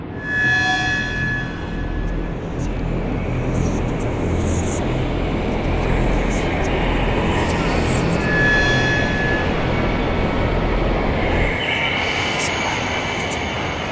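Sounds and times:
scary forest ambience: 0.2s - 13.9s.

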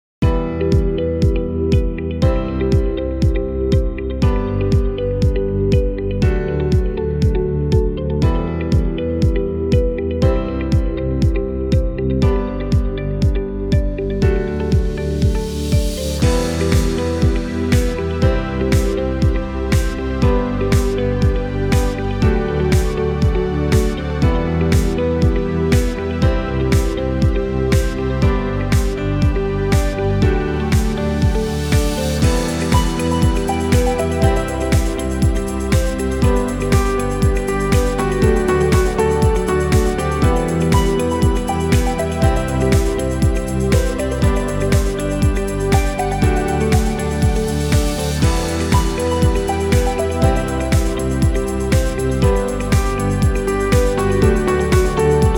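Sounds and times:
inspired ambient music: 0.2s - 55.3s.

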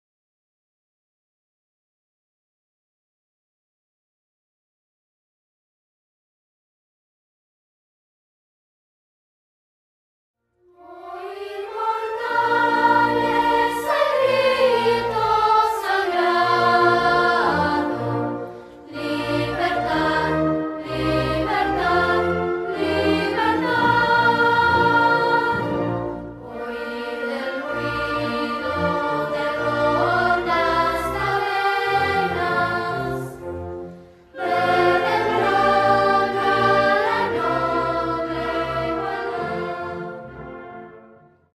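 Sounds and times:
children singing a hymn: 10.7s - 40.5s.

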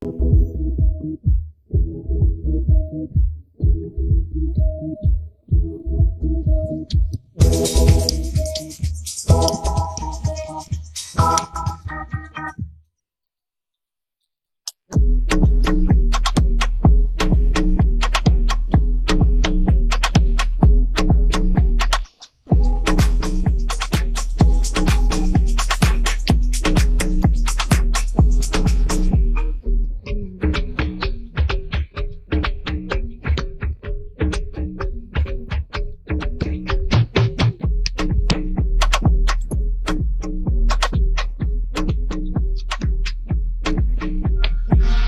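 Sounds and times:
rap accompaniment beat: 0.0s - 12.7s, 14.8s - 45.0s.

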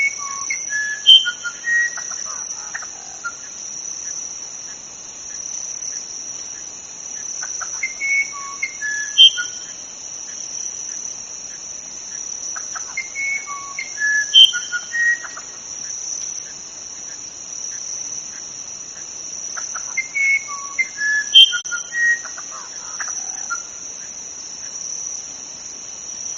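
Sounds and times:
uirapuru verdadeiro singing: 0.0s - 3.6s, 7.6s - 9.9s, 12.6s - 15.5s, 19.6s - 23.8s.

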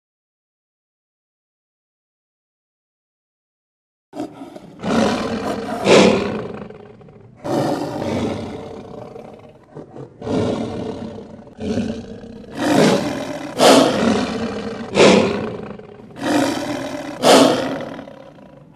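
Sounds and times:
lion roaring: 4.2s - 18.7s.

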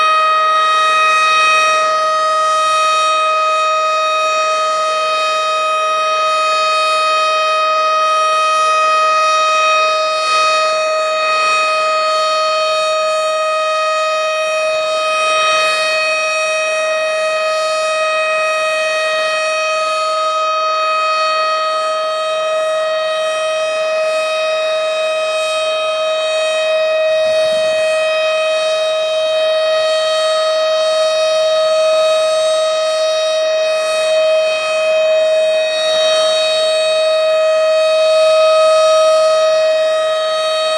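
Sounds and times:
tornado siren: 0.0s - 40.7s.

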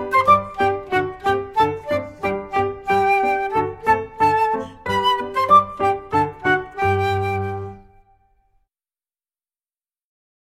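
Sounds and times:
instrumental folk song: 0.0s - 8.3s.

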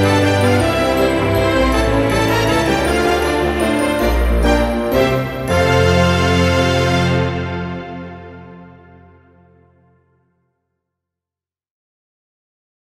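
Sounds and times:
Christmas instrumental for trumpet orchestra: 0.0s - 10.2s.

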